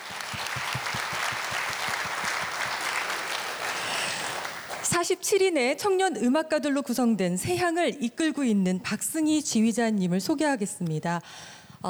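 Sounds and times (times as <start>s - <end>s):
crowd applauding: 0.0s - 4.9s
speech: 5.0s - 11.8s.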